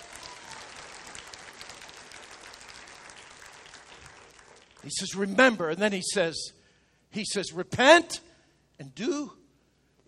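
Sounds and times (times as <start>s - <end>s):
crowd clapping: 0.0s - 5.3s
speech: 4.8s - 9.4s.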